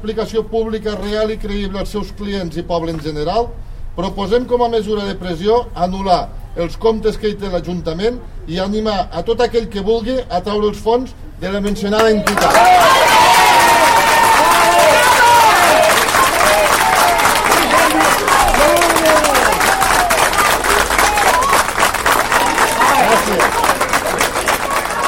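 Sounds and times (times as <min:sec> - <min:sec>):
speech: 0:00.0 - 0:13.3
Rasquera residents clapping at a BBVA cash machine protest: 0:12.0 - 0:25.0.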